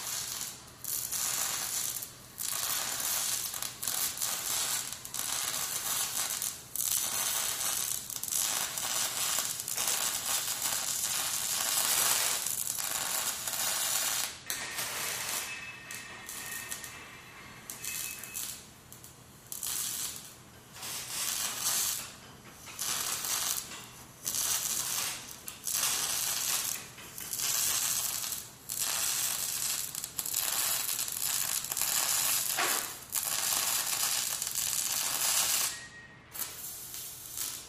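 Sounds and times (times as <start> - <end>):
welding: 0.0 - 17.0, 17.7 - 37.6.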